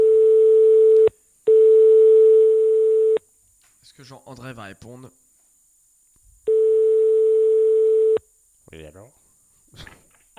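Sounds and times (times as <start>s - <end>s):
telephone call tone while ringing someone: 0.0s - 3.2s, 6.5s - 8.2s
speech: 4.1s - 5.2s, 8.7s - 10.0s.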